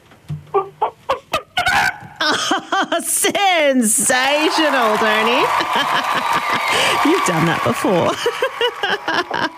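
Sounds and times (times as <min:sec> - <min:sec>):
caller imitating a chicken clucking: 0:00.5 - 0:02.2
laughter: 0:02.2 - 0:03.2, 0:04.5 - 0:09.5
speech: 0:02.3 - 0:09.5.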